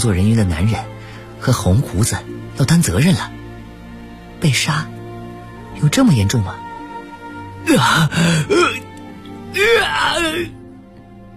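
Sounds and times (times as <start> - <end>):
speech: 0.0 - 3.4, 4.4 - 5.0, 5.8 - 6.6, 7.6 - 8.8, 9.5 - 10.6
agonized human wailing from a room: 7.7 - 8.8, 9.5 - 10.5.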